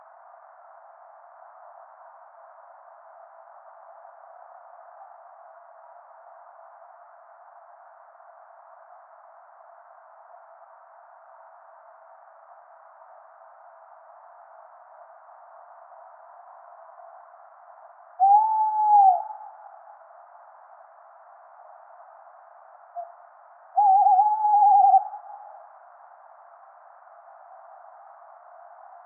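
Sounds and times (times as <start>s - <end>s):
tawny owl Strix aluco calling: 18.2s - 19.6s, 23.8s - 25.6s.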